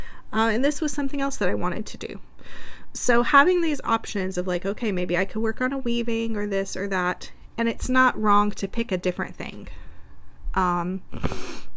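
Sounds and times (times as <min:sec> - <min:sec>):
speech: 0:00.3 - 0:09.8, 0:10.6 - 0:11.5
person sniffling: 0:11.1 - 0:11.7.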